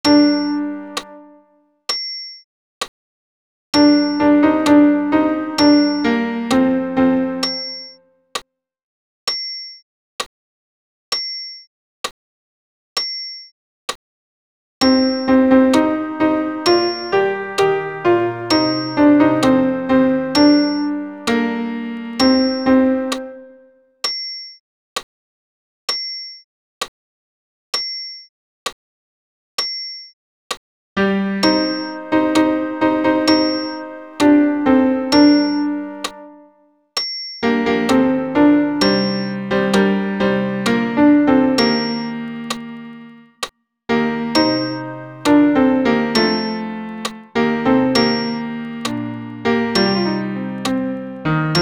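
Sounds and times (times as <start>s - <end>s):
piano accompaniment: 0.0s - 1.6s, 3.8s - 7.8s, 14.8s - 23.7s, 31.0s - 36.6s, 37.4s - 51.6s.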